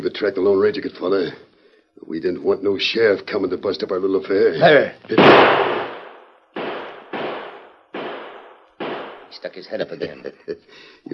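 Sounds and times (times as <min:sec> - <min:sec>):
speech: 0:00.0 - 0:05.8, 0:09.4 - 0:11.1
gunshots in a western radio drama: 0:05.1 - 0:09.4
laughter: 0:09.7 - 0:10.8.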